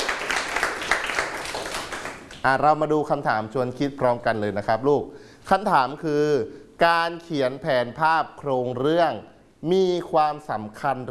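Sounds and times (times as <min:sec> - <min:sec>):
students clapping in a classroom: 0:00.0 - 0:02.4
speech: 0:02.4 - 0:11.0.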